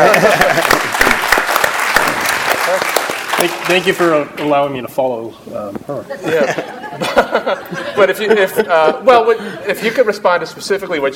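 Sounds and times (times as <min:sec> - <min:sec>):
laughter: 0:00.0 - 0:01.4, 0:06.1 - 0:10.2
audience applause: 0:00.0 - 0:04.1
speech: 0:03.5 - 0:11.1.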